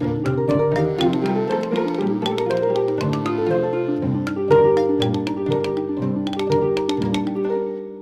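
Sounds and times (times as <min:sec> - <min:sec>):
classic xylophone: 0:00.0 - 0:07.7.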